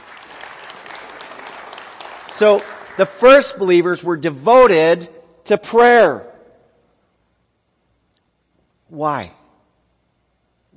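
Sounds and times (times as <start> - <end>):
audience applause: 0.0 - 3.5
speech: 2.3 - 6.3, 8.9 - 9.4.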